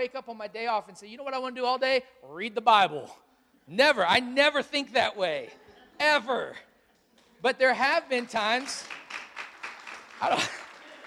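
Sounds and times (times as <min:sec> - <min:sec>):
speech: 0:00.0 - 0:06.7, 0:07.4 - 0:09.0, 0:10.2 - 0:10.6
audience clapping: 0:08.0 - 0:11.0.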